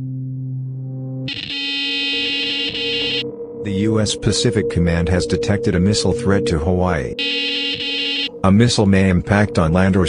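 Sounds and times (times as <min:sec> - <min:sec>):
cell phone emergency alert tone: 0:01.3 - 0:03.2, 0:07.2 - 0:08.5
speech: 0:03.6 - 0:10.0.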